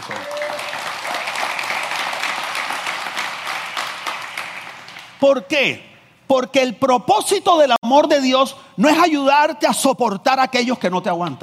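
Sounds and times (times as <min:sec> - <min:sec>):
audience applause: 0:00.0 - 0:05.1
speech: 0:05.2 - 0:11.4.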